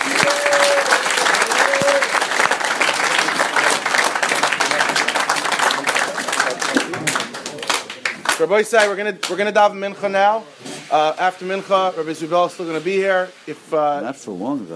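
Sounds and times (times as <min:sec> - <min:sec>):
audience applause: 0:00.0 - 0:09.4
speech: 0:08.4 - 0:14.7.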